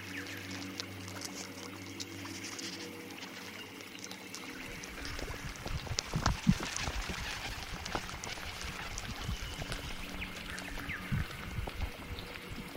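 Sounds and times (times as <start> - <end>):
crackling trickling texture: 0.0 - 12.7
sci-fi low droning hum: 0.0 - 12.7.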